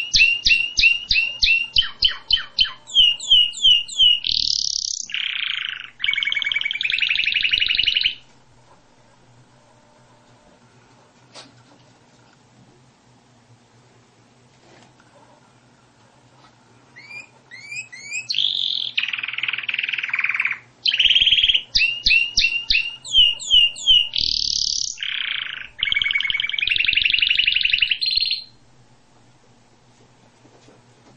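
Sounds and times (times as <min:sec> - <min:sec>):
canary singing: 0:00.0 - 0:09.1, 0:16.9 - 0:28.6.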